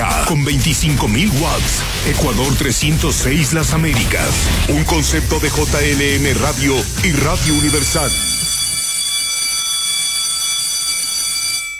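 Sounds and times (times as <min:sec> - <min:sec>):
speech: 0:00.3 - 0:08.3
signal or alarm bell ringing: 0:06.3 - 0:11.7.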